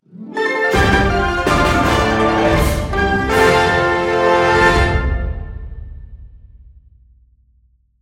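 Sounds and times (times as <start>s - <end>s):
victory theme music: 0.0s - 6.2s.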